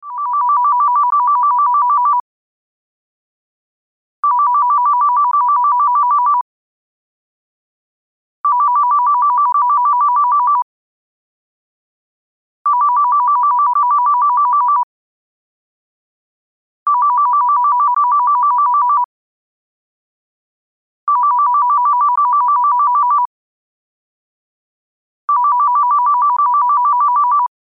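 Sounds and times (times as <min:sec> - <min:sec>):
landline phone ringtone: 0:00.1 - 0:02.2, 0:04.2 - 0:06.5, 0:08.4 - 0:10.7, 0:12.7 - 0:14.9, 0:16.9 - 0:19.1, 0:21.1 - 0:23.3, 0:25.3 - 0:27.5.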